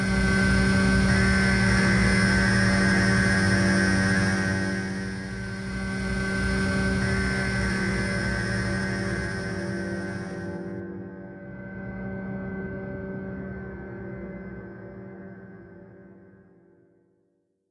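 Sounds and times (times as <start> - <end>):
drone tone: 0.0 - 10.8.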